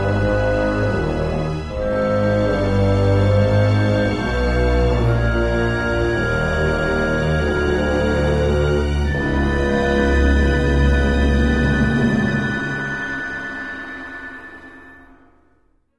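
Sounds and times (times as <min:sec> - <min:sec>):
suspense music: 0:00.0 - 0:15.9.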